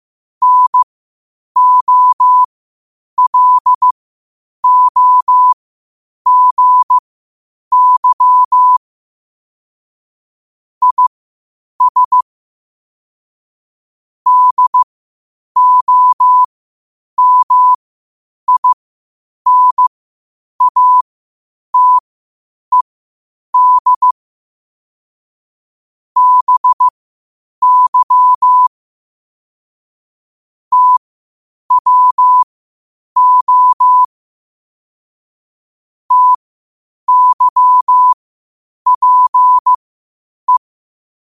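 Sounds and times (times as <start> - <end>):
morse code at 5 wpm: 0.4 - 0.8, 1.6 - 2.5, 3.2 - 4.0, 4.6 - 5.6, 6.3 - 7.0, 7.7 - 8.8, 10.8 - 11.1, 11.8 - 12.2, 14.3 - 14.9, 15.6 - 16.5, 17.2 - 17.8, 18.5 - 18.8, 19.5 - 19.9, 20.6 - 21.0, 21.8 - 22.0, 23.6 - 24.2, 26.2 - 26.9, 27.6 - 28.7, 30.7 - 31.0, 31.7 - 32.5, 33.2 - 34.1, 36.1 - 36.4, 37.1 - 38.2, 38.9 - 39.8.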